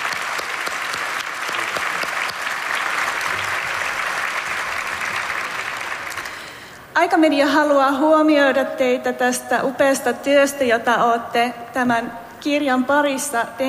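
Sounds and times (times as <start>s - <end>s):
audience applause: 0.0s - 6.7s
speech: 7.0s - 13.6s.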